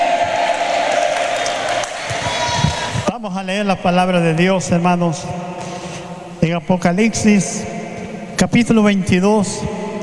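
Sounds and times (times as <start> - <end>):
audience applauding: 0.1 - 3.1
speech: 3.3 - 5.5, 6.5 - 7.7, 8.4 - 9.8.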